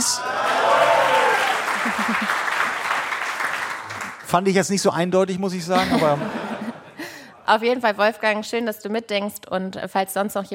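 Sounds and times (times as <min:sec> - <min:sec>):
audience applause: 0:00.0 - 0:04.5
laughter: 0:01.5 - 0:02.8, 0:05.6 - 0:07.4
speech: 0:01.9 - 0:02.4, 0:04.3 - 0:06.5, 0:07.5 - 0:10.5.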